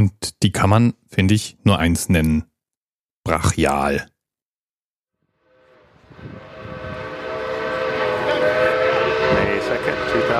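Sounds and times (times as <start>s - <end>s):
speech: 0.0s - 2.5s, 3.2s - 4.1s
steam locomotive passing at high speed: 5.4s - 10.3s.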